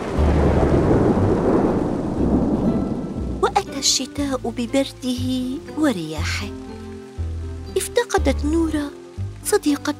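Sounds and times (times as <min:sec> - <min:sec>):
thunder: 0:00.0 - 0:03.6
rain: 0:00.0 - 0:09.9
speech: 0:03.8 - 0:06.7, 0:07.8 - 0:09.9.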